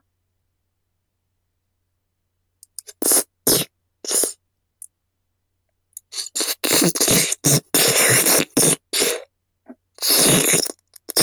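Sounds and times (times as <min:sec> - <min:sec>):
ear licking ASMR: 0:02.8 - 0:04.4, 0:06.0 - 0:09.3, 0:10.0 - 0:11.2.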